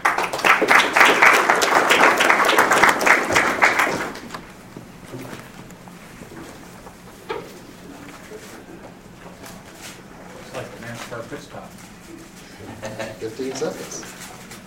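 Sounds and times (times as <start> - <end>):
audience applause welcoming a speaker at a talk on E15 fuel and racing: 0.0 - 4.5.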